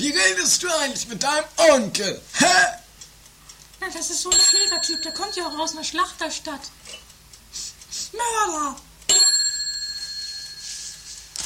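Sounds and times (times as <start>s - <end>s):
speech: 0.0s - 2.8s, 3.8s - 9.4s
doorbell ringing: 4.3s - 5.8s, 9.1s - 11.1s.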